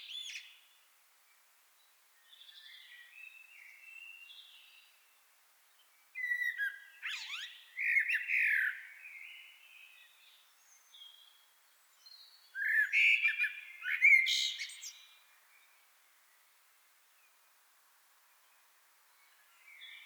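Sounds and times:
common blackbird fluty song: 0.0 - 17.6, 18.3 - 20.0.

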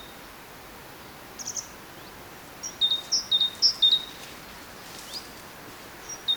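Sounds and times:
Parus major great tit song: 1.4 - 6.3.

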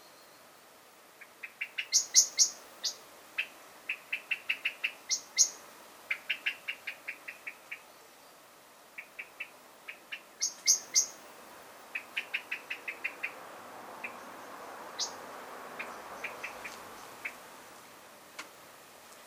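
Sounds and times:
common blackbird Turdus merula giving sharp metallic chink calls: 1.2 - 8.0, 9.0 - 11.3, 11.9 - 13.4, 14.0 - 15.2, 15.8 - 17.4.

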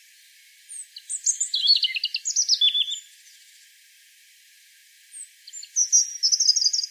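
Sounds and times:
European robin singing: 0.3 - 3.6, 5.1 - 6.8.

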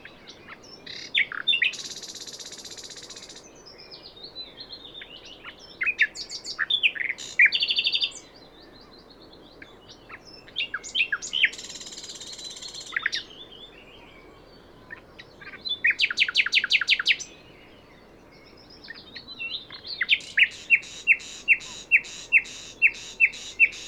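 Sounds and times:
Common nightingale singing: 0.0 - 23.8
background hiss: 0.0 - 23.8.

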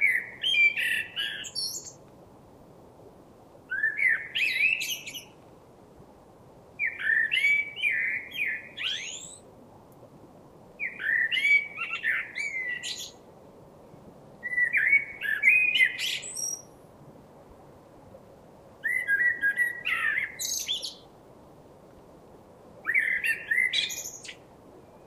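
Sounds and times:
common blackbird singing: 0.0 - 2.0, 3.7 - 5.3, 6.8 - 9.4, 10.8 - 13.2, 14.4 - 16.7, 18.8 - 21.0, 22.8 - 25.0.

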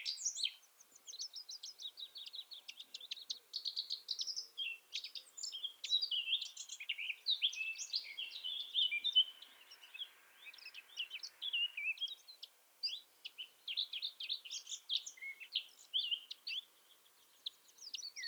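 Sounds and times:
Eurasian blackcap Sylvia atricapilla song: 0.0 - 18.2.

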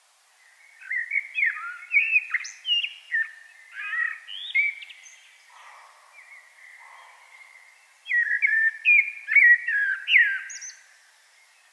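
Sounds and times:
common blackbird whistled song: 0.5 - 10.9.

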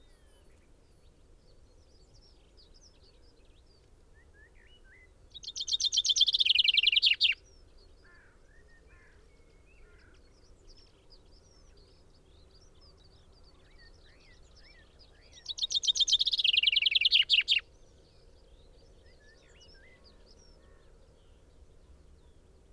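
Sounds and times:
common chaffinch Fringilla coelebs singing a cascading trill: 5.4 - 7.4, 15.3 - 17.6.

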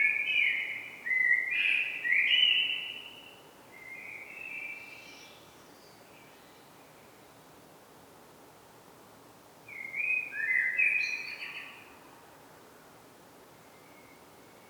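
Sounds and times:
common blackbird Turdus merula song: 0.0 - 6.7, 9.7 - 12.0.

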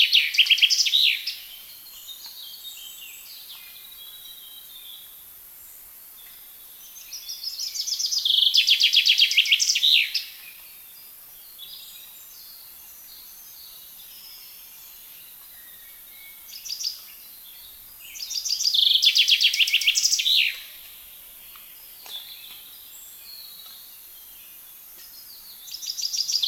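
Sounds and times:
common chaffinch song: 0.1 - 26.4.

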